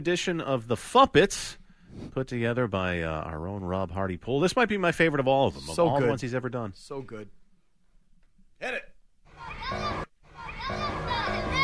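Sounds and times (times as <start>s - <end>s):
speech: 0.0s - 7.4s, 8.6s - 8.9s
children playing and shouting outside: 9.3s - 11.6s.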